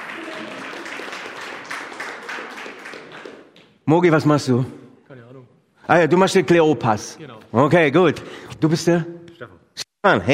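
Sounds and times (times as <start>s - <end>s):
crowd applauding steadily: 0.0s - 3.8s
speech: 3.9s - 4.8s, 5.9s - 10.3s.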